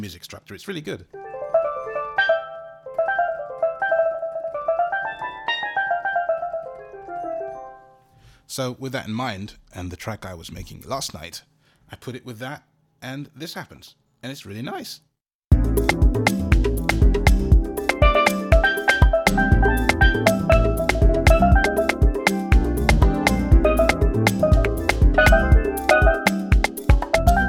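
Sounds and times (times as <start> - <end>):
steel pans playing: 1.3 - 7.7, 16.3 - 27.4.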